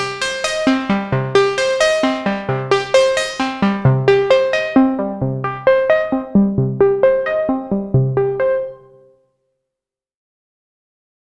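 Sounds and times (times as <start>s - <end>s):
Sonicware Texture Lab granular engine in Prophet 5 mode: 0.0s - 9.0s.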